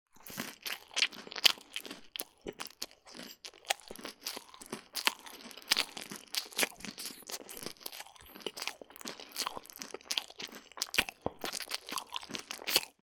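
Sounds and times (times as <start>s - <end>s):
person eating wet food: 0.1s - 13.0s.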